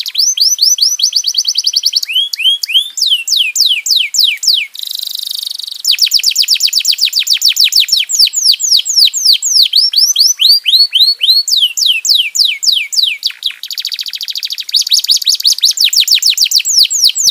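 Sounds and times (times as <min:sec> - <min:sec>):
domestic canary song: 0:00.0 - 0:17.3.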